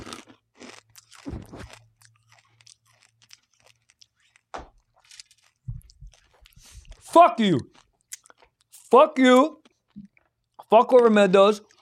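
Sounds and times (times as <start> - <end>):
crunchy popcorn-flavoured Skittles candy being chewed: 0.0 - 11.8
speech: 7.1 - 7.7, 8.9 - 9.6, 10.7 - 11.7.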